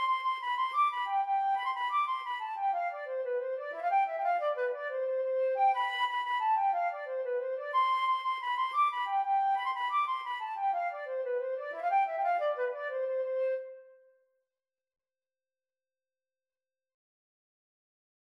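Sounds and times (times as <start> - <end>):
flute: 0.0 - 14.2.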